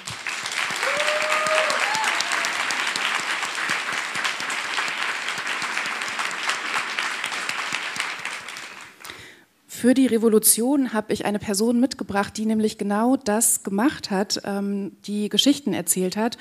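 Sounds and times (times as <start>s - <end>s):
audience applauding: 0.0s - 9.2s
speech: 9.8s - 16.3s.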